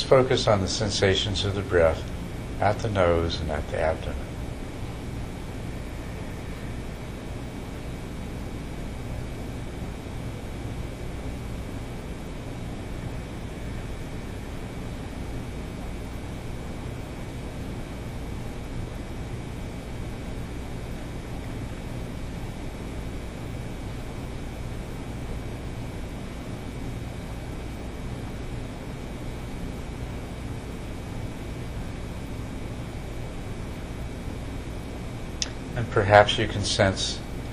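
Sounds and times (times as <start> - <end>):
steady mechanical hum: 0.0 - 37.5
speech: 0.1 - 4.3, 36.1 - 37.2.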